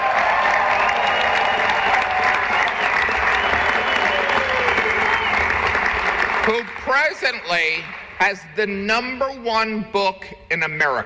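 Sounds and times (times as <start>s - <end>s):
faint whistles and cheers: 0.0s - 6.6s
large audience applause: 0.0s - 8.5s
speech: 6.5s - 11.0s.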